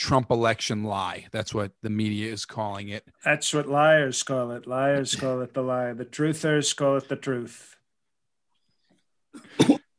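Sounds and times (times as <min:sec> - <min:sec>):
speech: 0:00.0 - 0:07.8, 0:09.3 - 0:09.8
cough: 0:09.4 - 0:09.9.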